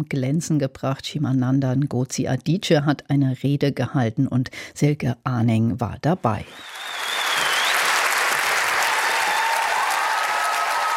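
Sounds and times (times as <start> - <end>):
speech: 0.0 - 7.0
cheers: 6.4 - 10.9
standing ovation: 6.4 - 10.9.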